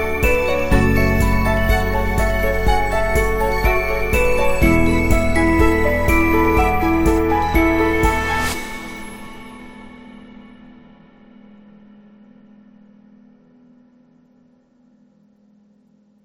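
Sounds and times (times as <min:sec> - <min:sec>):
corporate commercial music: 0:00.0 - 0:11.1.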